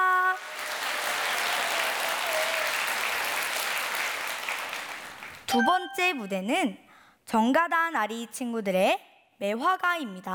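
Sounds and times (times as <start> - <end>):
audience applause after a performance: 0.0 - 5.5
speech: 5.5 - 10.3.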